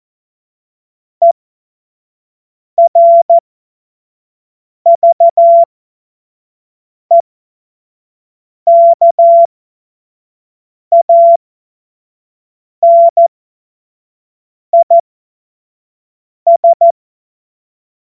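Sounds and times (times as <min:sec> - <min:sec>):
CW Morse code beeps: 0:02.8 - 0:03.4, 0:04.9 - 0:05.7, 0:08.7 - 0:09.5, 0:10.9 - 0:11.4, 0:12.8 - 0:13.3, 0:14.8 - 0:15.0, 0:16.5 - 0:16.9.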